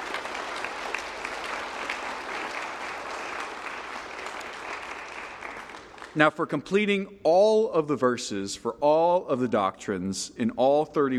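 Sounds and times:
audience applause: 0.0s - 6.2s
speech: 6.2s - 11.1s.

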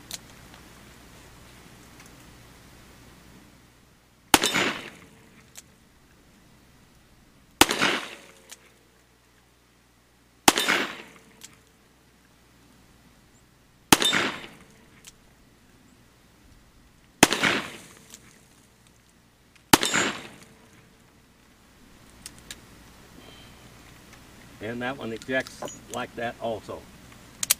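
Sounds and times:
Smith & Wesson Model 66 revolver gunshots: 4.3s - 5.4s, 7.6s - 8.5s, 10.5s - 11.4s, 13.9s - 14.8s, 17.2s - 18.4s, 19.7s - 20.8s
speech: 24.6s - 26.9s.

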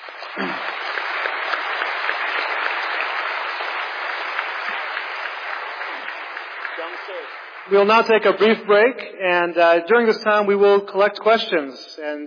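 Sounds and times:
audience round of applause for debaters: 0.0s - 8.8s
speech: 0.2s - 0.8s, 7.0s - 12.2s.

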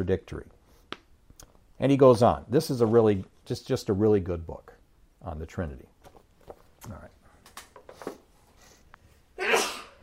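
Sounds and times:
speech: 0.0s - 0.6s, 1.8s - 5.9s, 6.8s - 7.1s
faint breathing: 7.2s - 9.3s
sneeze: 9.4s - 10.0s.

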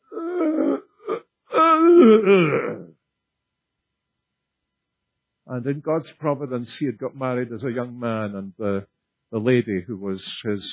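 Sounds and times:
person imitating wordless groans: 0.1s - 2.9s
speech: 2.2s - 2.7s, 5.6s - 10.7s.

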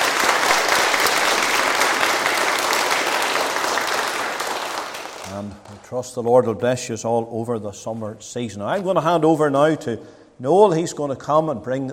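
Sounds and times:
parents applauding: 0.0s - 5.9s
speech: 5.9s - 11.9s.

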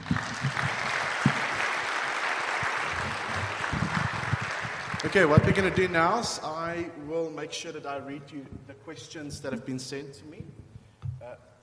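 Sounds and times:
room full of people applauding: 0.0s - 6.2s
speech: 5.0s - 10.6s, 11.3s - 11.6s.

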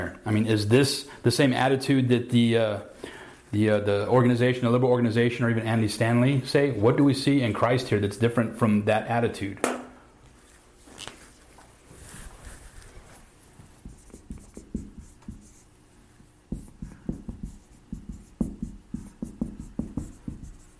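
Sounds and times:
speech: 0.0s - 9.7s
writing on a board during a class: 13.6s - 20.7s.

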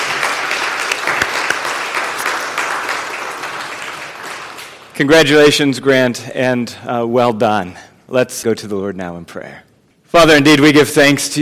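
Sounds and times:
audience applause: 0.0s - 5.0s
speech: 5.0s - 11.4s.

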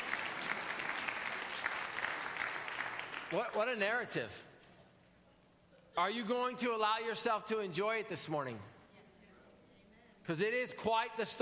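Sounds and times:
audience clapping: 0.0s - 3.9s
speech: 3.3s - 4.5s, 6.0s - 8.8s, 10.3s - 11.4s.

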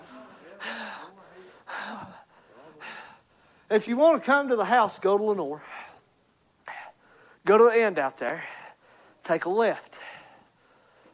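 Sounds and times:
preacher gasping heavily, catching his breath mid-sermon: 0.0s - 3.7s, 5.6s - 7.4s, 8.3s - 9.2s, 9.9s - 11.1s
speech: 3.7s - 5.7s, 7.5s - 8.5s, 9.3s - 9.9s.

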